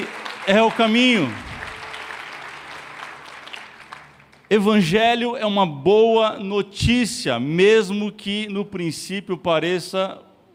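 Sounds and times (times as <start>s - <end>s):
speech: 0.0s - 1.5s, 4.5s - 10.2s
audience applause: 0.0s - 4.5s.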